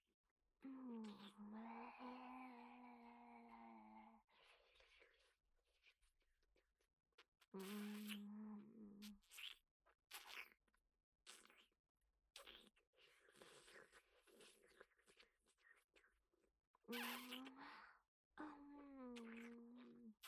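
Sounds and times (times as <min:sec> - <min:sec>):
asmr mouth sounds: 0:00.6 - 0:04.2, 0:07.5 - 0:09.6, 0:16.9 - 0:20.1.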